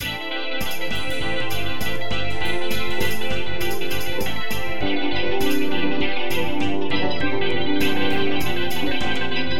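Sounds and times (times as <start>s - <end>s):
rock music: 0.0s - 9.5s.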